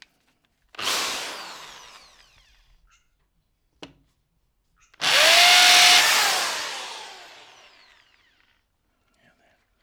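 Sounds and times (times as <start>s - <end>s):
drill: 0.8s - 2.6s, 5.0s - 8.4s.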